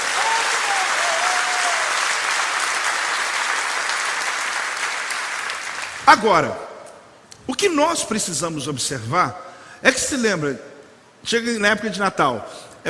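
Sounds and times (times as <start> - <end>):
audience applause: 0.0 - 6.0
speech: 6.1 - 6.6, 7.5 - 12.8.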